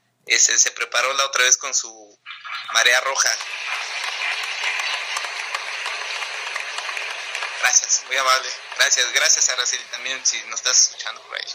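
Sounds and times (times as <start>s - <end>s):
speech: 0.3s - 3.8s, 7.6s - 11.5s
crowd applauding: 3.2s - 11.5s.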